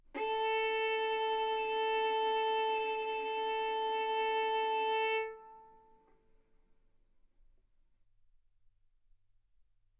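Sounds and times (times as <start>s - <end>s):
violin arco on A string: 0.1s - 6.0s.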